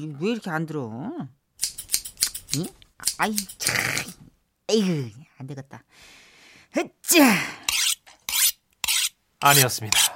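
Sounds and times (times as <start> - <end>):
speech: 0.0 - 1.4, 2.5 - 7.8, 9.4 - 10.1
scissor blades being sharpened: 1.6 - 3.8, 7.7 - 10.1.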